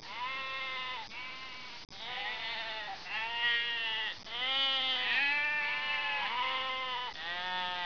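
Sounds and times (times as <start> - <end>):
sheep: 0.0 - 7.8.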